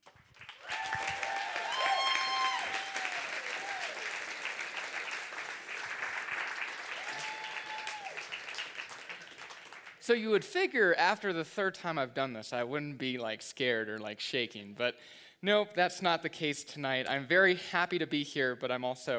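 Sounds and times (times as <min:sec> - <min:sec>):
church audience applause welcoming a senior high student: 0:00.0 - 0:10.0
whoops: 0:00.6 - 0:04.3, 0:06.9 - 0:08.4
speech: 0:10.1 - 0:19.1.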